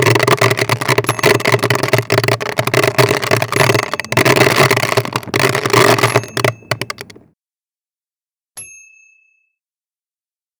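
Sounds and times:
hailstorm: 0:00.0 - 0:07.2.

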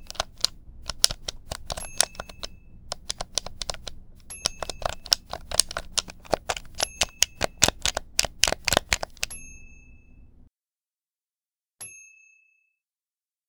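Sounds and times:
video game controller: 0:00.0 - 0:09.3.

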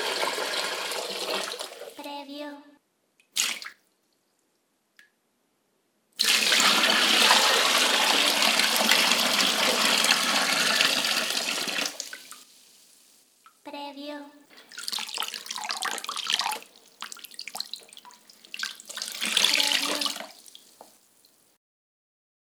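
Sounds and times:
water pouring: 0:00.0 - 0:02.0, 0:06.2 - 0:12.6, 0:14.5 - 0:21.4.

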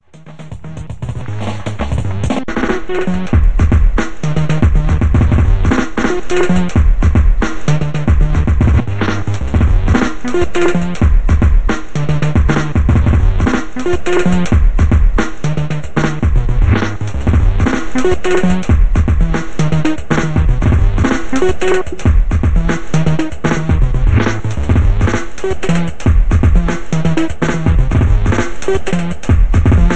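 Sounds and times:
drum and bass music: 0:00.0 - 0:29.9.

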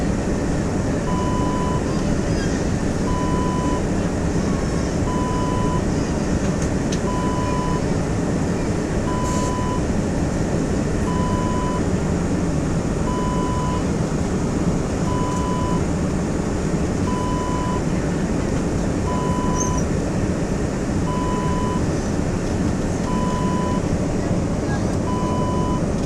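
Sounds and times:
aircraft cabin ambience: 0:00.0 - 0:26.0.

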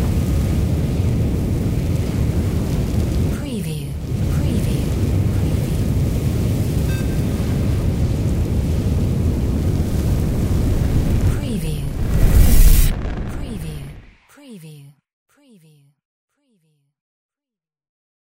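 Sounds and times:
sci-fi fire spell: 0:00.0 - 0:14.2.

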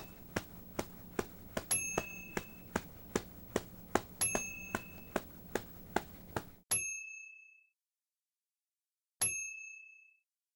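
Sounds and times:
wings flapping: 0:00.0 - 0:06.6.

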